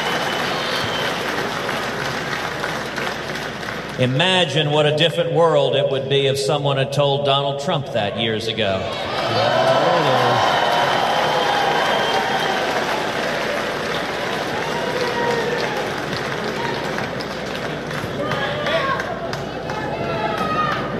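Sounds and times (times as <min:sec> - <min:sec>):
loud steady crowd roar: 0:00.0 - 0:03.7, 0:08.4 - 0:20.9
speech: 0:04.0 - 0:10.2.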